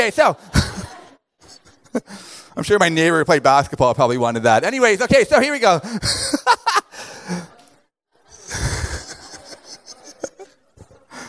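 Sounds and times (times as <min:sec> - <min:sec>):
speech: 0:00.0 - 0:00.7, 0:01.9 - 0:06.6
laughter: 0:00.3 - 0:02.5, 0:05.8 - 0:11.2
scattered breaths: 0:01.5 - 0:02.6, 0:05.8 - 0:06.1, 0:06.9 - 0:09.1, 0:10.9 - 0:11.2
audience member snorting: 0:08.3 - 0:09.4.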